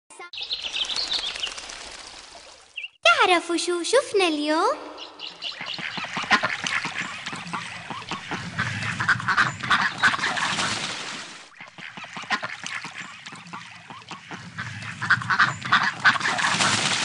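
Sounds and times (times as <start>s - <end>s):
speech: 0.3s - 0.7s, 3.2s - 5.1s
ducks quacking at a pond: 5.0s - 10.9s, 11.5s - 16.9s.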